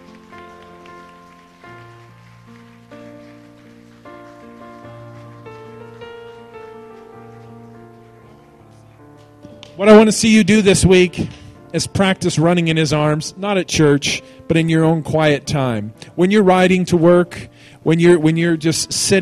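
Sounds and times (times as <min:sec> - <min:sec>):
audience clapping: 0:00.0 - 0:10.1
speech: 0:09.8 - 0:19.2.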